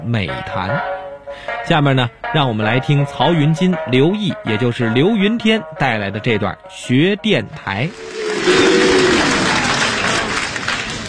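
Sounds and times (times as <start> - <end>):
speech: 0.0 - 9.1
audience applause at a crosstalk comedy performance: 8.0 - 11.0.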